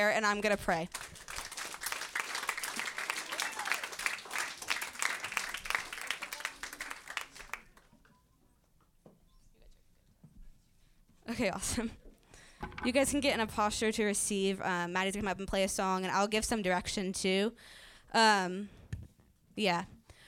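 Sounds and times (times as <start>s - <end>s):
speech: 0.0s - 1.3s, 11.3s - 12.0s, 12.8s - 18.8s, 19.6s - 20.0s
audience clapping: 0.3s - 8.1s.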